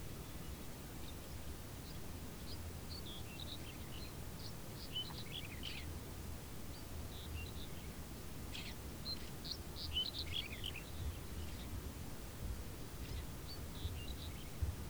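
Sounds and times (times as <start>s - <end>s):
several birds twittering and chirping in a field: 0.2s - 14.8s.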